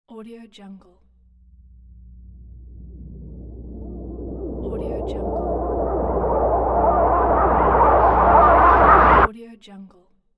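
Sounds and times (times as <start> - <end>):
cinematic horror suspense music: 1.3 - 9.3
horror voices: 1.7 - 9.3.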